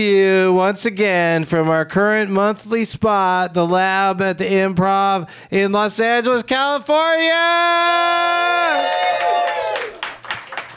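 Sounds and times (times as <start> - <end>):
speech: 0.0 - 9.6
comedy club audience whooping: 7.7 - 10.7
scattered clapping: 8.9 - 10.7.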